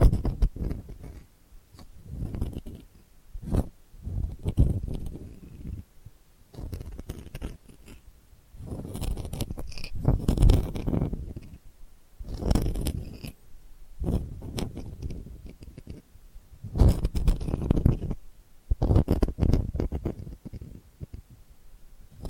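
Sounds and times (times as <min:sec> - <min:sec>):
delicate scratching: 0:00.0 - 0:05.9, 0:06.5 - 0:21.4.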